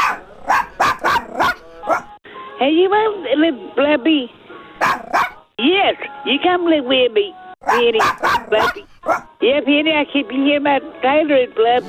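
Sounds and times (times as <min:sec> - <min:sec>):
Chihuahua puppies yapping: 0:00.0 - 0:02.2, 0:04.8 - 0:05.4, 0:07.6 - 0:09.3
speech: 0:02.6 - 0:11.8.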